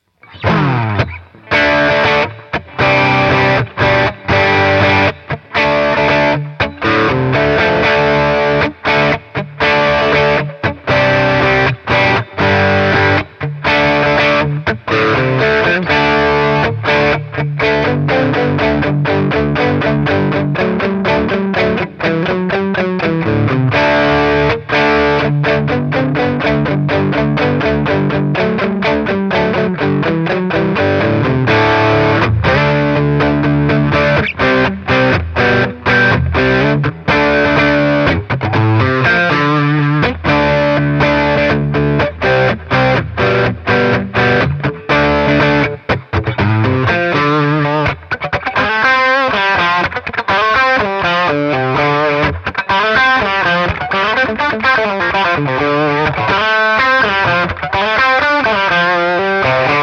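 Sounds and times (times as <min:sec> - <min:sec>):
ES335 through Boss Katana 100: 0:00.0 - 0:59.8.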